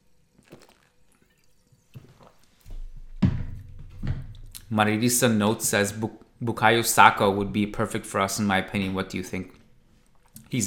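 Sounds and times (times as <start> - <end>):
person sipping a drink: 0.1 - 2.8
speech: 4.7 - 9.6.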